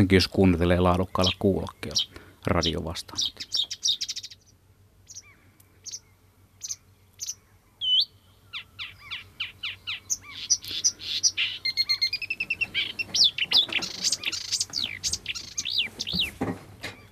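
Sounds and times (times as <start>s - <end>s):
speech: 0.0s - 3.7s
birds twittering: 0.0s - 17.1s.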